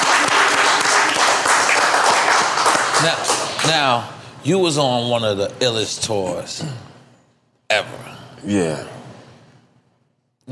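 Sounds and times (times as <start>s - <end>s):
audience applause: 0.0s - 4.0s
speech: 3.0s - 6.9s, 7.7s - 8.9s.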